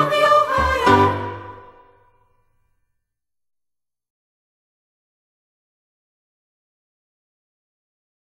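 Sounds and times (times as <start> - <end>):
soprano singing: 0.0 - 1.9.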